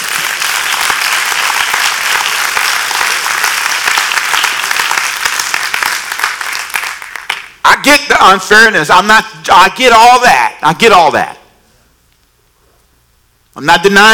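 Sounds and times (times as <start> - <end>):
audience clapping hands: 0.0 - 7.6
speech: 7.8 - 11.4, 13.6 - 14.1.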